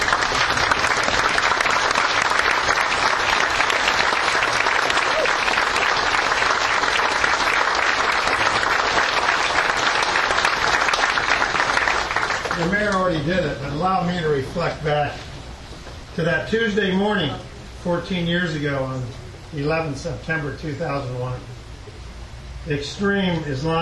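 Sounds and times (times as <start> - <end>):
large audience applause: 0.0 - 13.0
speech: 13.9 - 15.2, 16.2 - 21.6, 22.6 - 23.8.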